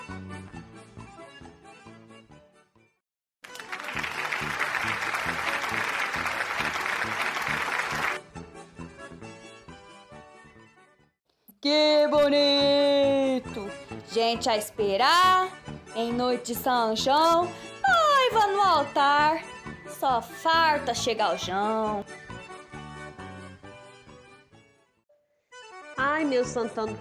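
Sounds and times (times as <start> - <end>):
music: 0.0 - 26.9
audience applause: 3.5 - 8.2
speech: 14.1 - 17.6, 18.3 - 22.2, 26.3 - 26.9.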